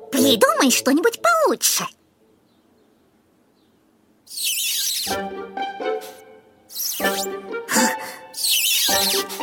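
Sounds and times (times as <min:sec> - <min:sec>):
speech: 0:00.3 - 0:02.0
styrofoam rubbed against glass squeaking: 0:04.3 - 0:05.2, 0:06.7 - 0:07.3, 0:08.4 - 0:09.4.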